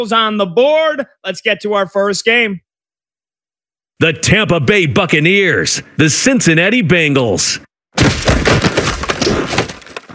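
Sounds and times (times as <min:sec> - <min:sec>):
speech: 0:00.0 - 0:02.6, 0:04.0 - 0:08.1
football pads crunching together in a tackle: 0:08.0 - 0:10.1.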